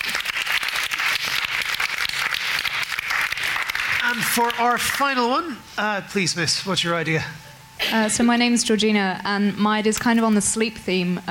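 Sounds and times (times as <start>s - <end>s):
crowd applause: 0.0s - 5.1s
speech: 4.2s - 11.2s.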